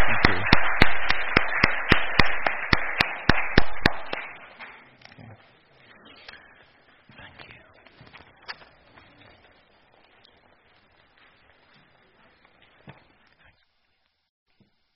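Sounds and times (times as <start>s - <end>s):
audience applause: 0.0s - 4.9s.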